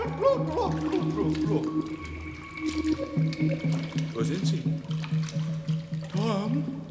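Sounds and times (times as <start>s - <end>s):
person calling out: 0.0s - 1.6s
water splashing as someone sinks: 0.0s - 6.9s
speech: 0.2s - 5.7s.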